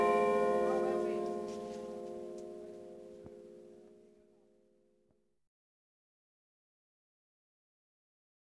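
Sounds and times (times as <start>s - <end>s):
bells ringing: 0.0s - 4.2s.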